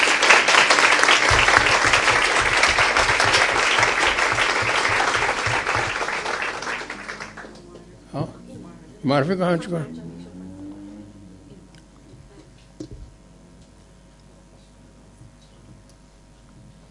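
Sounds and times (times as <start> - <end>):
audience clapping: 0.0 - 7.8
speech: 9.0 - 10.1.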